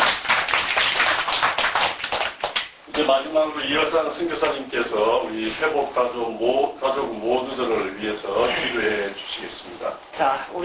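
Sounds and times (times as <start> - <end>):
audience applauding at a gathering: 0.0 - 2.7
speech: 3.0 - 10.6.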